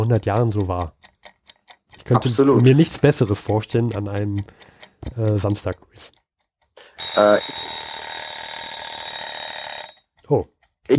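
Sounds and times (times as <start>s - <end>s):
speech: 0.0s - 1.0s, 2.1s - 6.2s, 7.2s - 7.7s, 10.3s - 10.9s
alarm bell ringing: 7.0s - 10.2s.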